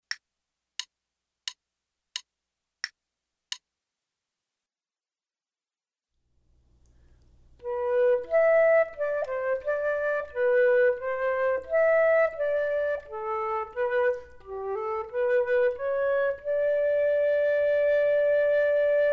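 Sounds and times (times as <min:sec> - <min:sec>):
flute duet: 0:07.6 - 0:19.1.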